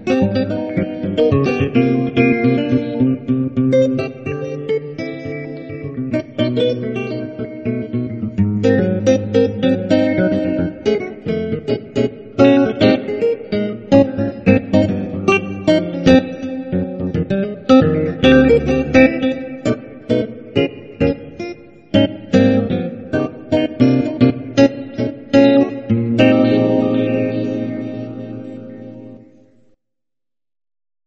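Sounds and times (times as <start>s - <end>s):
nylon-string guitar tone with effects applied: 0.0s - 29.8s.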